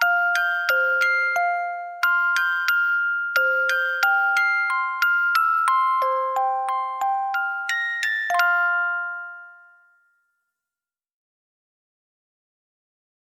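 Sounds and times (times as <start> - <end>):
music box arrangement: 0.0 - 10.5.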